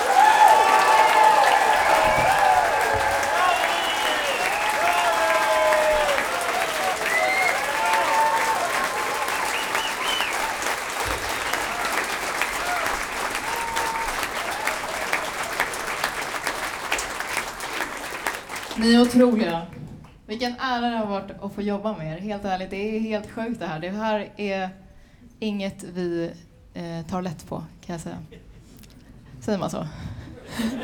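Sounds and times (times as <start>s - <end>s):
voices cheering: 0.0s - 18.8s
loud applause from a large audience for a string orchestra: 0.0s - 19.1s
speech: 19.1s - 19.7s, 20.3s - 24.8s, 25.4s - 28.5s, 29.4s - 30.8s.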